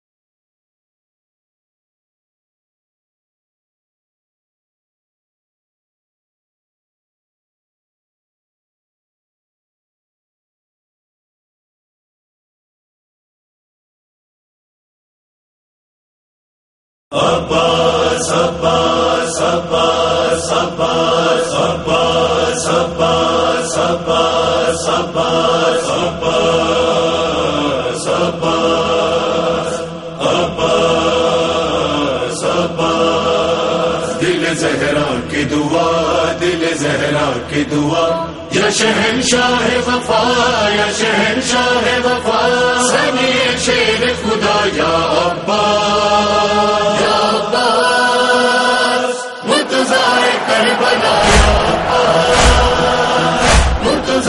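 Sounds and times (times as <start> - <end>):
noha lament recitation: 17.1 - 54.2.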